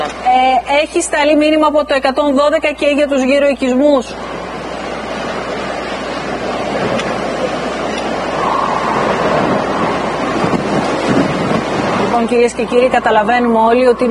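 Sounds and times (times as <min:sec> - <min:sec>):
speech: 0:00.0 - 0:04.4, 0:12.2 - 0:14.1
strong storm winds blasting across a live reporter's microphone: 0:04.2 - 0:14.1.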